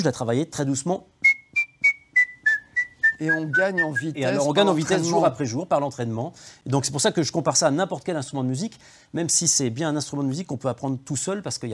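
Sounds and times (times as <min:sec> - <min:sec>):
speech: 0:00.0 - 0:01.2, 0:03.2 - 0:11.7
fast human whistling: 0:01.2 - 0:04.2.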